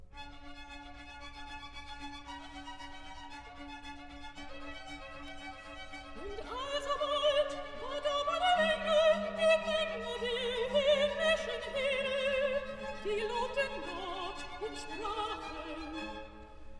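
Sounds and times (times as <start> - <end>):
second soprano singing accompanied recitative: 6.2 - 16.6.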